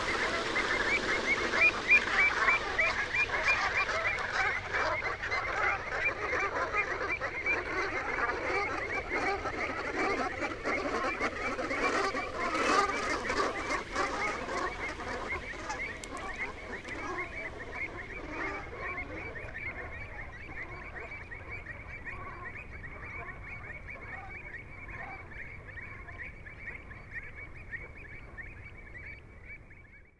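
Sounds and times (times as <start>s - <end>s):
dark-bellied brent goose rrrot calls: 0.0s - 19.7s
dark-bellied brent geese taking flight: 0.0s - 21.0s.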